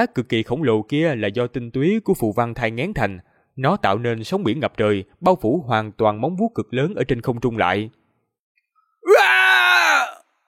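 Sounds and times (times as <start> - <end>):
speech: 0.0 - 8.0
low roaring howl voiced by a person: 9.0 - 10.2.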